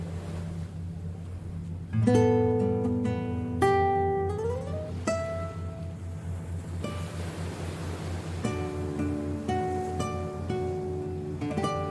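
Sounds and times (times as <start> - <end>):
waves washing at Shark Beach, Vaucluse: 0.0 - 11.9
ringing guitar notes: 1.6 - 6.2, 8.4 - 11.9.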